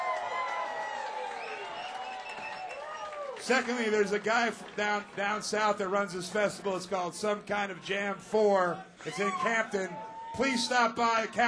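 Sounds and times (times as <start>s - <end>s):
audience applause: 0.0s - 6.6s
audience cheering: 0.0s - 6.9s, 9.0s - 11.4s
speech: 3.4s - 11.4s.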